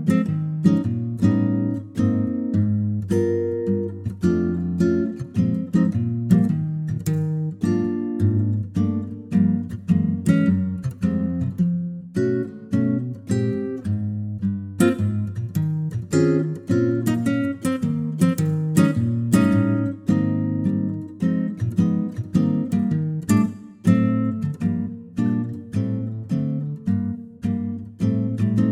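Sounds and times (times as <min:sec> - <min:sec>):
acoustic guitar arrangement in E flat: 0:00.0 - 0:28.7.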